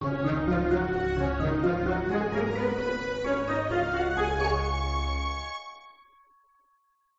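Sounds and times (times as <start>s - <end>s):
level intro music: 0.0s - 5.9s.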